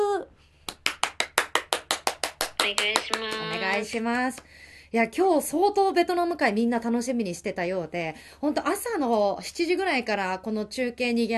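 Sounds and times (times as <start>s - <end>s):
small group clapping: 0.7s - 4.5s
speech: 2.6s - 11.3s.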